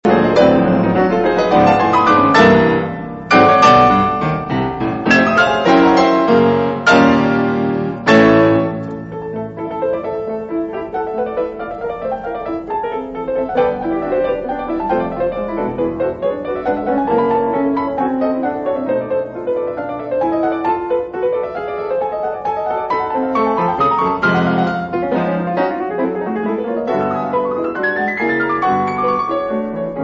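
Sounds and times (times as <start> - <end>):
two pianos playing a concerto allegro: 0.0 - 30.0.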